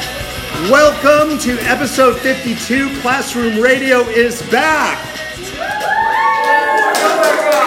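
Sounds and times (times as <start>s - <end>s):
speech: 0.6s - 5.1s
studio audience clapping and cheering in a radio recording studio: 5.3s - 7.6s.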